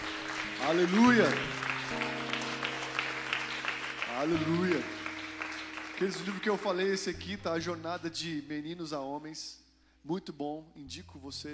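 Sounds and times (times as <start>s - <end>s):
audience applauding: 0.0s - 7.2s
sustained instrumental chord: 0.1s - 8.0s
speech: 0.6s - 2.1s, 4.2s - 5.0s, 6.0s - 11.5s.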